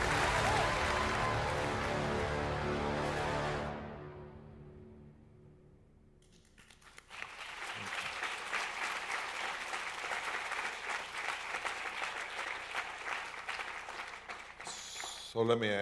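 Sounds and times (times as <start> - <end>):
audience applause: 0.0 - 3.7, 6.6 - 15.4.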